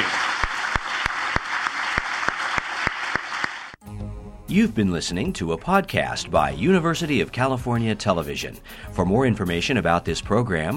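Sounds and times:
audience applause: 0:00.0 - 0:03.8
speech: 0:04.5 - 0:10.7.

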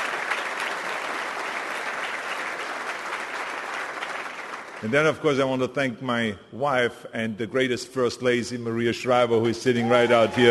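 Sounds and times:
applause: 0:00.0 - 0:05.2, 0:09.8 - 0:10.4
speech: 0:04.8 - 0:10.4.

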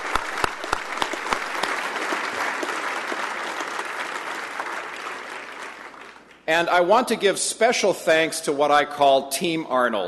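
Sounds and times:
audience applause: 0:00.0 - 0:06.4
speech: 0:06.5 - 0:10.0.

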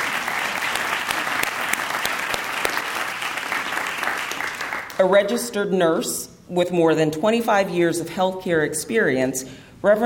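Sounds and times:
audience applause: 0:00.0 - 0:05.0
speech: 0:05.0 - 0:10.0.

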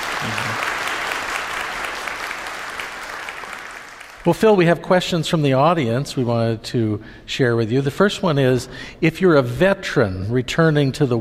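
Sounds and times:
audience applause: 0:00.0 - 0:04.2
speech: 0:00.2 - 0:00.7, 0:04.2 - 0:11.2.

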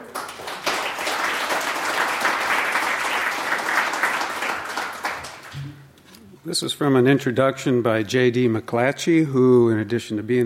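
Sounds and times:
audience applause welcoming a speaker: 0:00.0 - 0:05.6
speech: 0:06.4 - 0:10.4.

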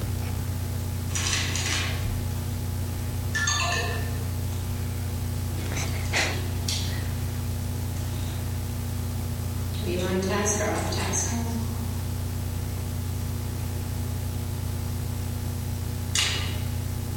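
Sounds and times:
low hum: 0:00.0 - 0:17.1
reminder timer electronic alert tone: 0:03.4 - 0:04.2.

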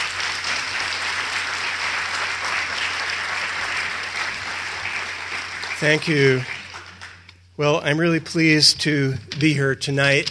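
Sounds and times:
audience applause greeting a university executive vice chancellor at a UC Santa Barbara event: 0:00.0 - 0:07.2
speech: 0:05.8 - 0:06.5, 0:07.6 - 0:10.2.

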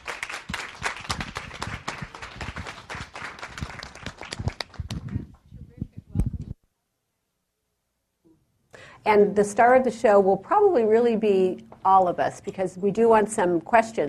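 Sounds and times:
audience applause: 0:00.0 - 0:05.2
speech: 0:09.1 - 0:14.0.

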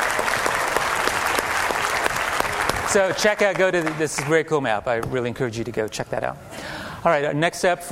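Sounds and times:
audience round of applause: 0:00.0 - 0:04.6
speech: 0:02.9 - 0:07.9.

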